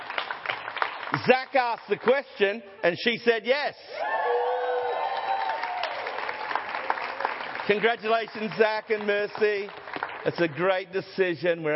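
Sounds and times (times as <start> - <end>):
church congregation clapping for a newly engaged couple: 0.0 - 2.2, 4.0 - 11.0
speech: 1.2 - 4.4, 7.7 - 11.7
people cheering and whooping: 3.9 - 6.5.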